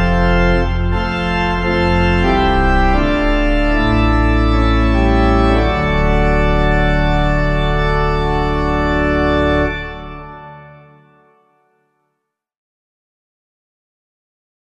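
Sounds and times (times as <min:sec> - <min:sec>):
organ: 0:00.0 - 0:11.7.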